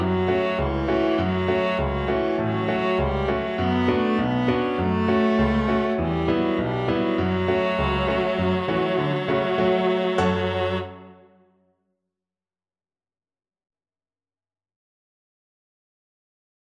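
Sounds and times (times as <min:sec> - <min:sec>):
viola: 0:00.0 - 0:11.4.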